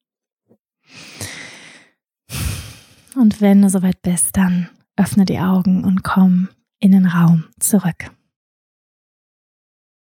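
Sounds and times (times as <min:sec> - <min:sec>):
slow deep breath in and out during a guided yoga meditation: 0:00.9 - 0:03.2
speech: 0:03.2 - 0:08.2.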